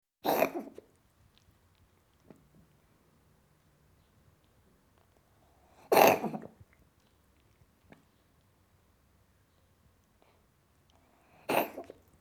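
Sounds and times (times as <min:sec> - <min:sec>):
cat coughing: 0:00.2 - 0:00.8, 0:05.9 - 0:06.5, 0:11.5 - 0:11.9.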